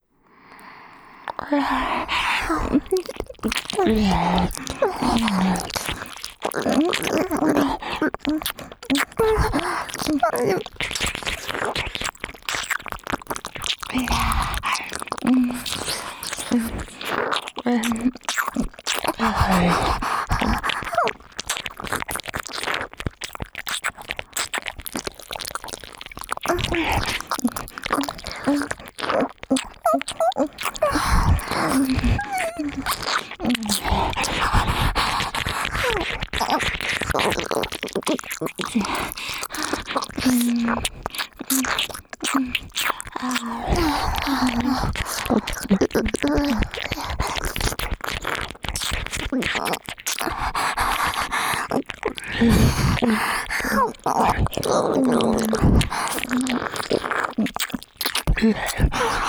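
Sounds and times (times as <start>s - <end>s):
ASMR ear licking: 1.3s - 59.2s.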